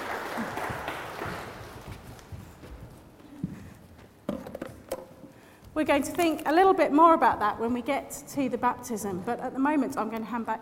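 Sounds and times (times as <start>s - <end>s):
audience applause: 0.0s - 2.0s
speech: 5.8s - 10.5s.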